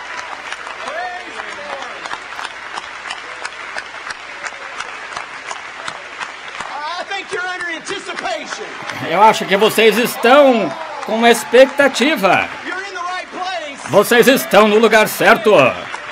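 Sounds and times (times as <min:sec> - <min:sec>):
crowd applauding: 0:00.0 - 0:16.0
shouts and whoops: 0:00.8 - 0:02.0, 0:08.2 - 0:16.0
speech: 0:08.3 - 0:12.6, 0:13.9 - 0:15.8.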